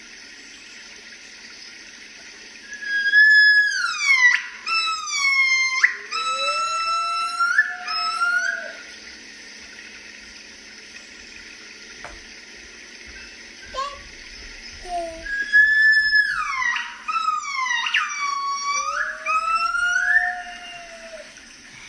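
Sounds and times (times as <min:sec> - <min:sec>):
gibbon whooping: 0:02.7 - 0:08.9, 0:14.9 - 0:21.4.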